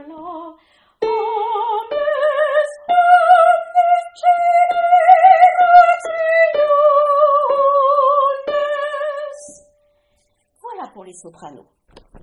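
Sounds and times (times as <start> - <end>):
soprano singing: 0.0 - 9.7.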